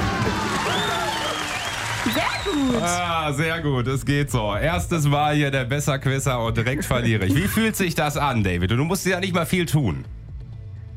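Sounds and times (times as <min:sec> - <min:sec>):
applause: 0:00.0 - 0:03.0
speech: 0:02.5 - 0:10.2.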